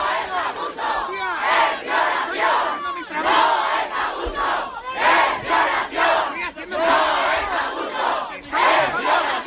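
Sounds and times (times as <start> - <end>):
protest crowd shouting outside courthouse: 0.0 - 9.4.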